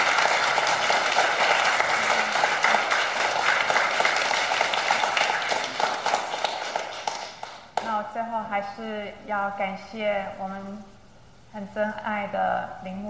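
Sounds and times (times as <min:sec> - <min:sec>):
warm applause: 0:00.0 - 0:07.9
speech: 0:08.6 - 0:13.0.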